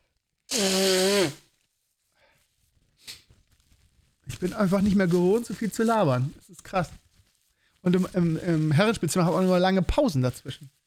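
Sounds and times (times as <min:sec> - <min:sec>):
nose blowing: 0:00.5 - 0:01.6
speech: 0:00.6 - 0:01.4, 0:04.4 - 0:07.0, 0:07.8 - 0:10.8.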